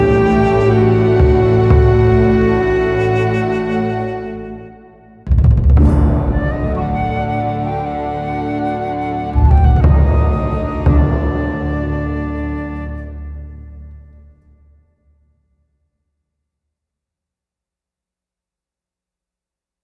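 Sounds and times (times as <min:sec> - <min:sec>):
music: 0:00.0 - 0:15.8.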